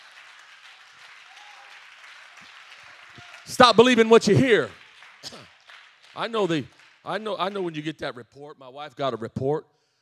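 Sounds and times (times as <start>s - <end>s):
audience clapping hands: 0.0s - 8.2s
speech: 3.5s - 5.4s, 6.2s - 9.7s.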